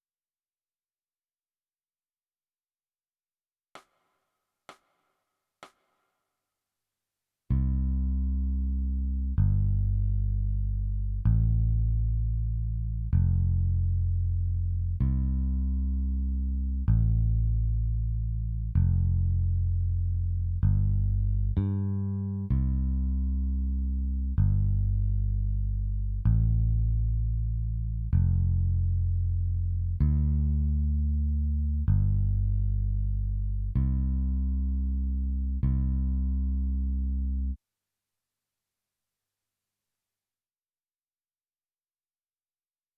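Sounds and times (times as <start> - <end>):
bass: 7.5 - 37.6.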